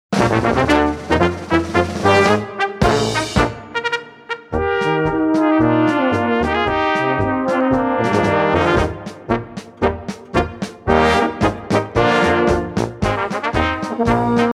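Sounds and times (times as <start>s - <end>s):
polka music: 0.1s - 14.5s.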